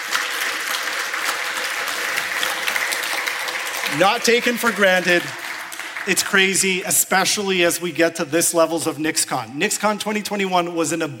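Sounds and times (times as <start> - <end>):
crowd applauding: 0.0 - 7.6
speech: 3.9 - 5.4, 6.0 - 11.1.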